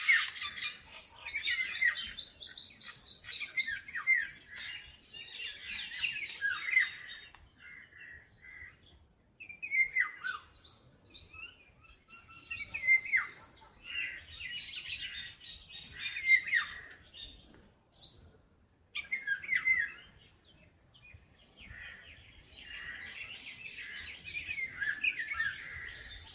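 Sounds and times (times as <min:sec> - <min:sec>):
Indian golden oriole: 0:00.0 - 0:26.3.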